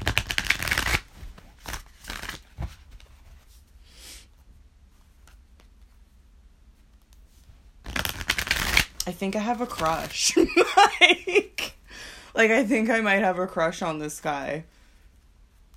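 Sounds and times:
Radiant Rider-Waite tarot cards riffle shuffle: 0:00.0 - 0:03.3, 0:07.8 - 0:10.2
speech: 0:09.1 - 0:14.7.

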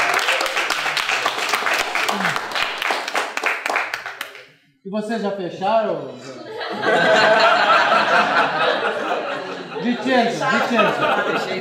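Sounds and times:
laughter: 0:00.0 - 0:02.8, 0:06.2 - 0:11.5
round of applause: 0:00.0 - 0:04.5
speech: 0:04.9 - 0:08.6, 0:09.8 - 0:11.5.

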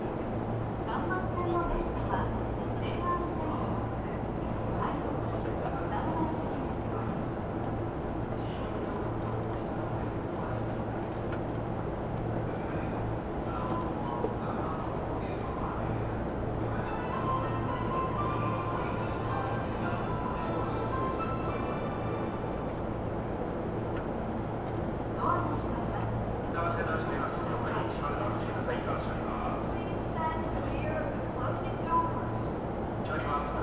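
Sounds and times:
Tokyo Metro train rumble and hum between Iidabashi and Nishi-Funabashi: 0:00.0 - 0:33.6.

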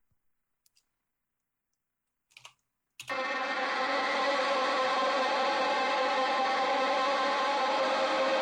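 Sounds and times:
isolated electric guitar track: 0:03.1 - 0:08.3.

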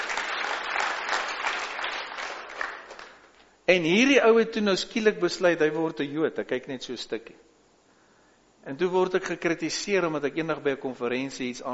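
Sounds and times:
audience clapping: 0:00.0 - 0:03.5
speech: 0:03.7 - 0:07.5, 0:08.7 - 0:11.7.

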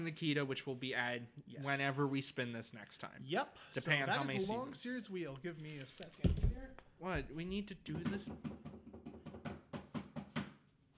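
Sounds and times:
speech: 0:00.0 - 0:08.7
knocking: 0:07.9 - 0:10.6.

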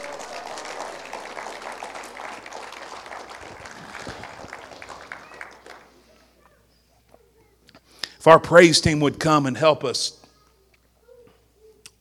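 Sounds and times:
audience clapping hands in praise: 0:00.0 - 0:06.0
speech: 0:08.2 - 0:10.2.

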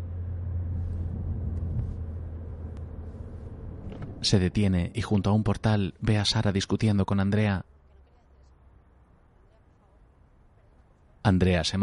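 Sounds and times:
car engine rumble while driving: 0:00.0 - 0:05.8
speech: 0:04.2 - 0:07.8, 0:11.2 - 0:11.8.

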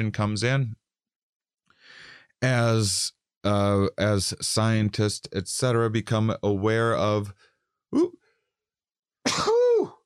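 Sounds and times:
speech: 0:00.0 - 0:00.8, 0:02.4 - 0:08.2
person sneezing: 0:09.3 - 0:10.0.

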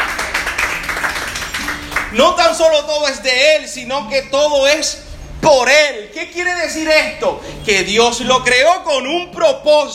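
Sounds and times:
audience applauding: 0:00.0 - 0:02.2
speech: 0:02.1 - 0:09.9.

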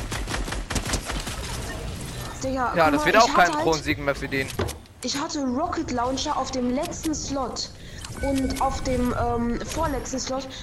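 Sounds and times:
rapid gunfire in the video game Fortnite: 0:00.0 - 0:02.0
speech: 0:02.4 - 0:10.6.

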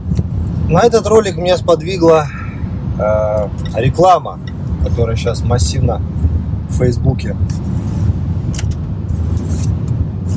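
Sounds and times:
car engine and road rumble driving through the city of Voronezh: 0:00.0 - 0:10.3
speech: 0:00.7 - 0:02.4, 0:03.0 - 0:07.8.

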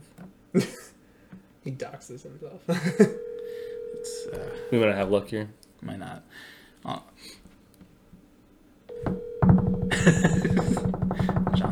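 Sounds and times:
speech: 0:00.5 - 0:00.8, 0:01.7 - 0:03.3, 0:04.1 - 0:07.4, 0:10.0 - 0:10.9
laughter: 0:00.6 - 0:01.0, 0:02.7 - 0:03.4, 0:09.9 - 0:11.7
phone call ringing unanswered: 0:02.9 - 0:05.1, 0:08.9 - 0:11.7.

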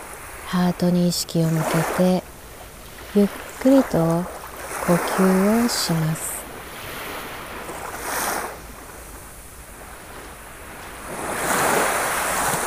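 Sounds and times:
ocean waves: 0:00.0 - 0:12.6
speech: 0:00.5 - 0:02.4, 0:03.1 - 0:06.3.

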